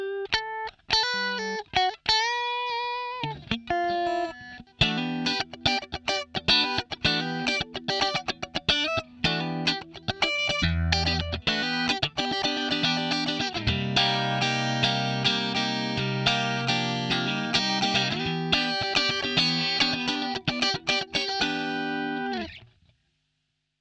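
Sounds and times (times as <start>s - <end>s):
electric guitar through a compressor pedal: 0.0s - 23.0s.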